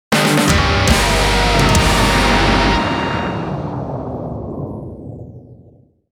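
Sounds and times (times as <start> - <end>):
defeat jingle: 0.1 - 3.8.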